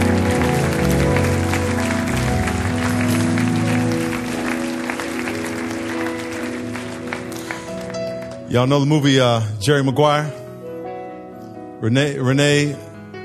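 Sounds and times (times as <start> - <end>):
audience clapping and applauding: 0.0 - 9.0
speech: 8.5 - 10.4, 11.8 - 12.9.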